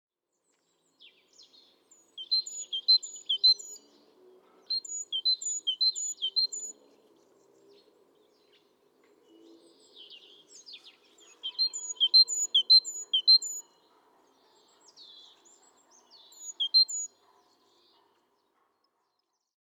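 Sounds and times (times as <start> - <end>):
softer bird sounds: 1.0 - 13.8, 14.4 - 18.1
Great tit singing: 2.1 - 3.9, 4.7 - 6.7, 11.2 - 13.6, 16.0 - 17.1.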